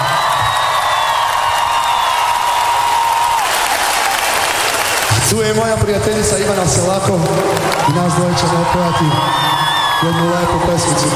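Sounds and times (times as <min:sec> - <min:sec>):
scattered cheers: 0:00.0 - 0:05.2, 0:07.3 - 0:11.1
concert audience in an arena clapping: 0:00.0 - 0:11.1
speech: 0:05.3 - 0:11.1.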